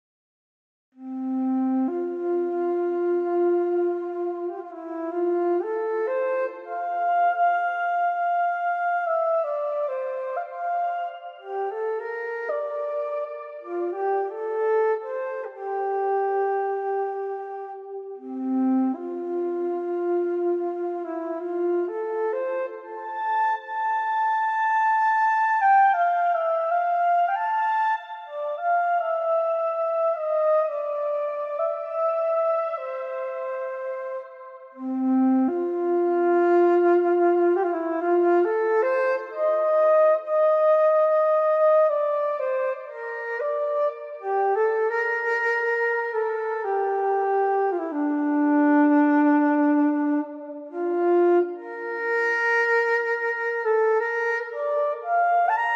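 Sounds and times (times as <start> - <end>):
saxophone: 1.0 - 55.7.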